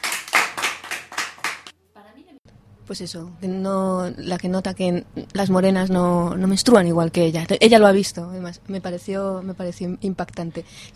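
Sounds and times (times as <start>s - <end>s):
audience at a feminist comedy show clapping in unison: 0.0s - 1.7s
speech: 2.9s - 10.9s.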